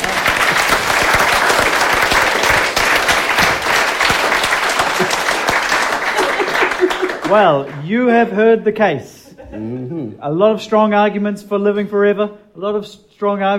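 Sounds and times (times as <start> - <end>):
audience applause: 0.0 - 7.8
laughter: 4.7 - 7.4, 9.2 - 10.0
speech: 7.3 - 13.5.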